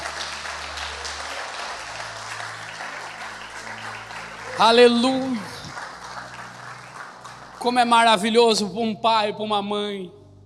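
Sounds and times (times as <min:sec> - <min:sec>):
audience applause: 0:00.0 - 0:08.4
speech: 0:04.6 - 0:05.5, 0:07.6 - 0:10.2.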